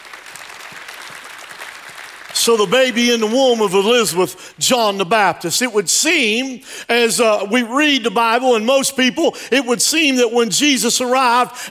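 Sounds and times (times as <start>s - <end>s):
audience hand clapping: 0.0s - 3.4s
speech: 2.4s - 11.6s.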